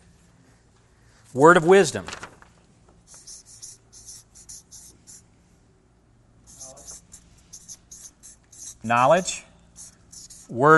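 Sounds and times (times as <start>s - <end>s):
speech: 1.3s - 2.2s, 8.9s - 9.4s, 10.5s - 10.7s
pen scratching on paper writing a list: 3.1s - 5.2s, 6.5s - 8.9s, 9.8s - 10.6s.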